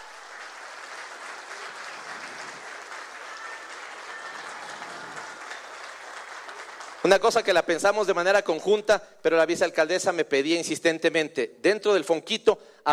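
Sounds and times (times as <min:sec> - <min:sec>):
audience applause: 0:00.0 - 0:07.6
speech: 0:07.0 - 0:12.9.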